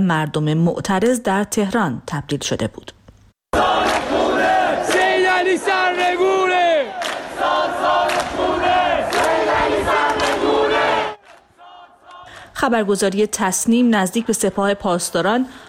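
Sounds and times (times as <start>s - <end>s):
speech: 0.0s - 3.6s, 12.6s - 15.6s
protest crowd chanting slogans at night: 3.5s - 12.4s.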